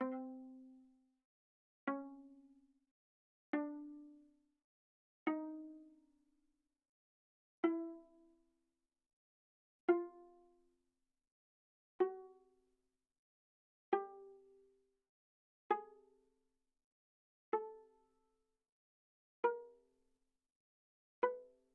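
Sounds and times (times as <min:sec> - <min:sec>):
viola pizzicato on the G string, fortissimo: 0:00.0 - 0:00.8, 0:01.9 - 0:02.3, 0:03.6 - 0:04.2, 0:05.3 - 0:05.9, 0:07.6 - 0:08.1, 0:09.9 - 0:10.6, 0:12.0 - 0:12.5, 0:13.9 - 0:14.4, 0:15.7 - 0:16.0, 0:17.5 - 0:17.8, 0:19.4 - 0:19.7, 0:21.2 - 0:21.5.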